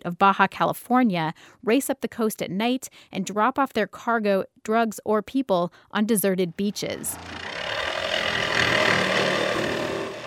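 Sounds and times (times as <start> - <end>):
speech: 0.0 - 7.5
worker cutting through the fiberglass hull of a captured smuggling boat: 6.8 - 10.2.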